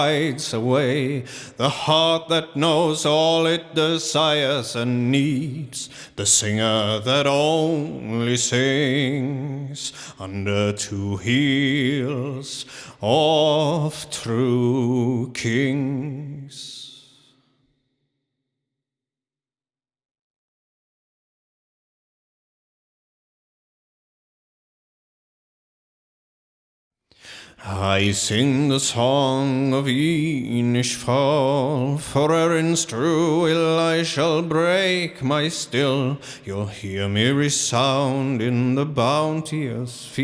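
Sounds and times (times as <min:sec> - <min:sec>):
English vocals at 160 BPM: 0:00.0 - 0:17.9, 0:27.1 - 0:40.2.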